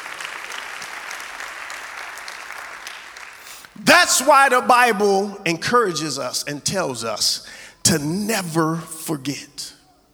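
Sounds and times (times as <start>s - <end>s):
audience clapping hands: 0.0s - 4.1s
speech: 3.8s - 9.8s.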